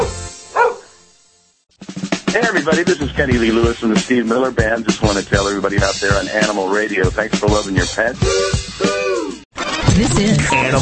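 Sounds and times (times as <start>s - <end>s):
dog barking: 0.0s - 0.9s
speech: 2.3s - 8.6s, 10.0s - 10.8s.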